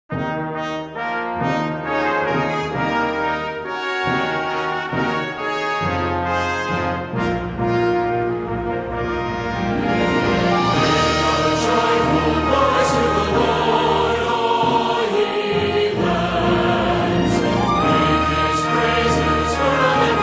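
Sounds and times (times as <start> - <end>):
orchestra playing: 0.2 - 20.2
choir singing: 8.5 - 20.2.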